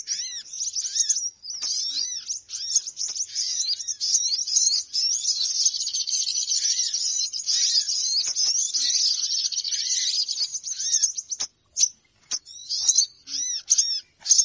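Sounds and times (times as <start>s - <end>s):
shrill bird twittering: 0.0s - 14.4s.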